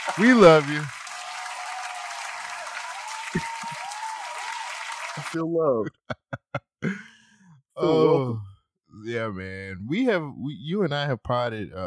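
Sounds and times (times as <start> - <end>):
crowd applause sound effect: 0.0 - 5.4
laughter: 0.0 - 7.1
speech: 0.1 - 1.0, 3.3 - 3.5, 5.2 - 7.1, 7.8 - 11.8.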